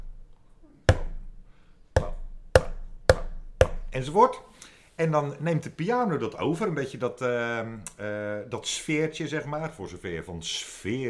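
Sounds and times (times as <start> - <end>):
faint low background: 0.0 - 11.0
percussion imitating hammer blows on wood: 0.9 - 1.4, 2.0 - 4.0
speech: 3.9 - 11.0.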